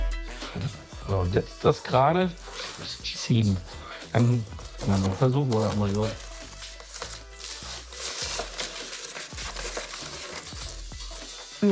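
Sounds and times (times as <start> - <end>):
speech: 1.1 - 6.2
plastic film tearing while cut with utility knife: 2.4 - 3.0, 4.2 - 11.7.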